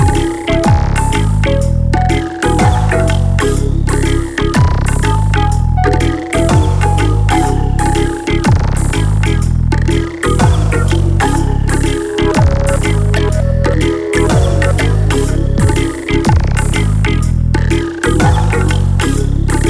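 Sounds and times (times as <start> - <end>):
dub music: 0.0 - 19.6.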